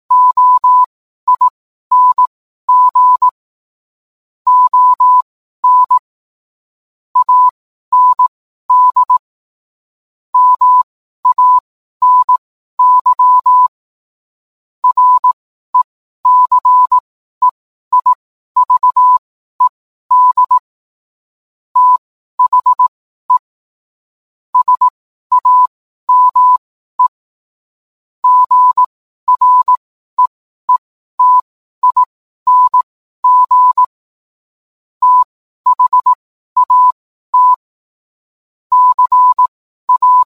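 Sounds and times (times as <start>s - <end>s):
morse code beeps: 0.1s - 3.4s, 4.5s - 6.0s, 7.2s - 9.2s, 10.4s - 13.7s, 14.8s - 20.7s, 21.8s - 23.5s, 24.6s - 27.2s, 28.2s - 34.0s, 35.0s - 37.7s, 38.7s - 40.3s.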